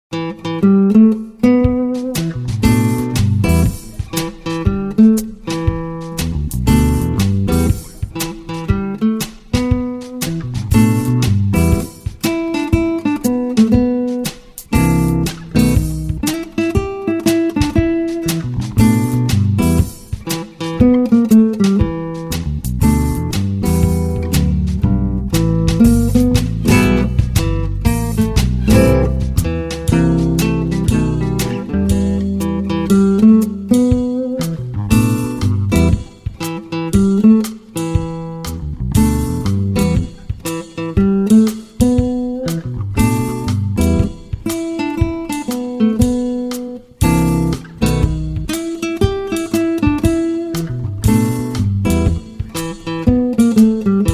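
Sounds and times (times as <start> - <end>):
guitar work song: 0.0 - 54.1.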